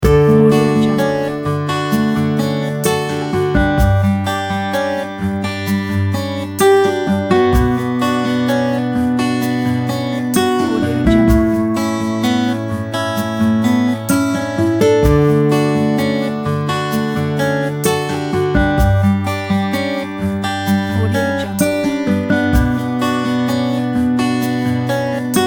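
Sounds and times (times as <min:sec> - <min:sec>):
easy light folk music: 0:00.0 - 0:25.4.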